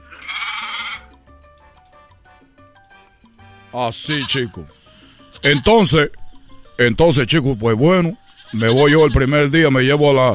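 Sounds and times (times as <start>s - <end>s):
goat bleating: 0.0s - 1.2s, 4.0s - 4.6s, 5.3s - 6.0s, 8.2s - 9.7s
speech: 3.7s - 4.8s, 5.4s - 6.2s, 6.8s - 10.3s.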